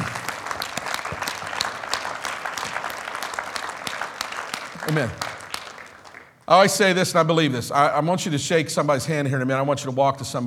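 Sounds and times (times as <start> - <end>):
audience clapping hands in praise: 0.0 - 6.8
speech: 4.9 - 5.3, 6.5 - 10.4.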